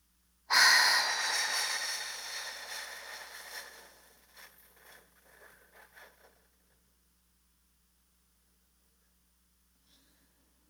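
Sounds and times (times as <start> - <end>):
long airy breath during a paced breathing exercise: 0.5 - 4.0
soft breath puffs: 0.5 - 6.6.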